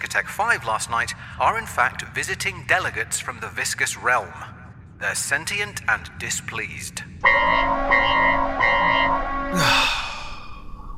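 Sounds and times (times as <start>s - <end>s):
speech: 0.1s - 10.0s
spaceship alarm: 7.2s - 9.6s.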